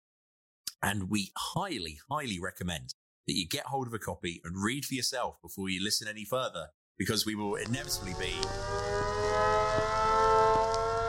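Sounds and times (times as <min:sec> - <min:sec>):
speech: 0:00.8 - 0:10.0
steady droning alarm with layered tones: 0:07.8 - 0:11.0.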